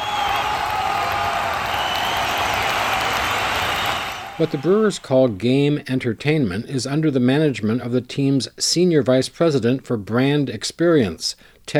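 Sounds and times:
recorded crowd cheering: 0:00.0 - 0:05.4
speech: 0:04.4 - 0:11.7.

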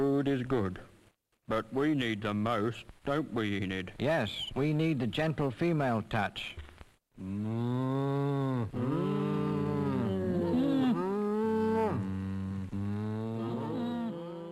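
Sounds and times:
speech: 0:00.2 - 0:00.9, 0:01.5 - 0:06.6, 0:07.2 - 0:09.4
cows mooing: 0:07.4 - 0:14.5.

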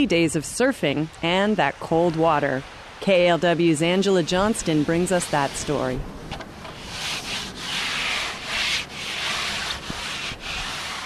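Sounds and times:
speech: 0:00.0 - 0:06.2
hand rubbing coating onto a surfboard: 0:04.2 - 0:06.0, 0:06.7 - 0:11.0.

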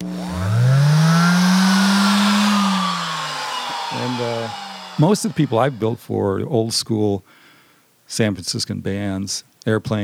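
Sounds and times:
hand sander running: 0:00.0 - 0:06.2
speech: 0:05.0 - 0:07.4, 0:08.1 - 0:10.0.

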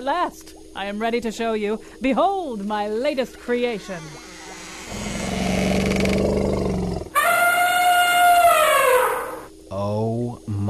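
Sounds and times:
speech: 0:00.0 - 0:04.3
woolly mammoth roaring: 0:04.8 - 0:09.4.

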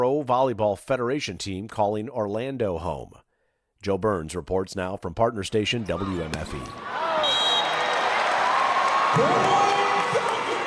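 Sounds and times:
speech: 0:00.0 - 0:03.2, 0:03.8 - 0:07.0, 0:09.1 - 0:09.6
crowd cheering at volleyball match: 0:05.9 - 0:10.6.

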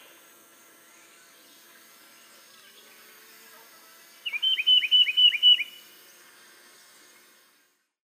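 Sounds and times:
tufted titmouse calling: 0:04.3 - 0:05.8.

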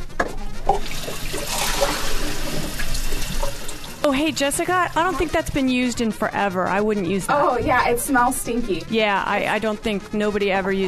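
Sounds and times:
running water from a tap: 0:00.6 - 0:05.9
speech: 0:04.1 - 0:10.8.

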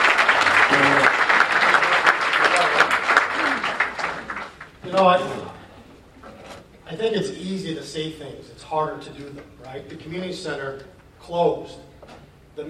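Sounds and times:
audience applause at public meeting: 0:00.0 - 0:05.2
speech: 0:07.8 - 0:11.9.

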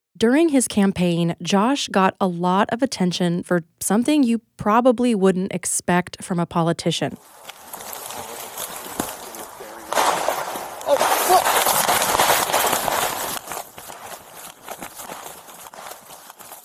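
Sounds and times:
speech: 0:00.2 - 0:07.6
police officers running footsteps: 0:07.2 - 0:16.6
gunshots: 0:09.7 - 0:13.4.

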